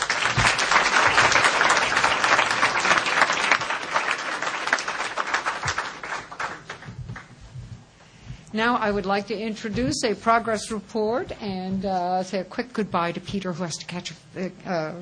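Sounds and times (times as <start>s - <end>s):
audience applause: 0.0s - 7.3s
speech: 8.6s - 15.0s.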